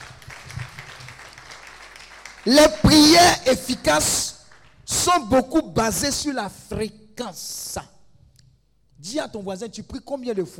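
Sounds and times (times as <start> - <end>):
church congregation applauding during a sermon: 0.0 - 5.2
speech: 2.4 - 4.3, 5.0 - 7.9, 9.0 - 10.5.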